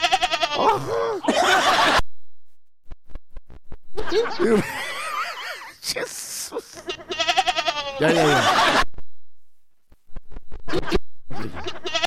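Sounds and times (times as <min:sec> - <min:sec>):
lamb bleating: 0:00.0 - 0:00.7, 0:06.8 - 0:08.3, 0:11.4 - 0:12.0
laughter: 0:00.8 - 0:02.0, 0:04.0 - 0:05.8, 0:08.0 - 0:08.9, 0:10.7 - 0:12.0
speech: 0:04.2 - 0:04.8, 0:08.0 - 0:08.8.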